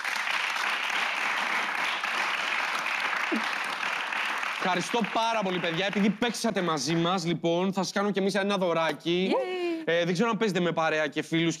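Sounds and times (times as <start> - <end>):
audience applause: 0.0 - 6.5
speech: 4.6 - 11.5.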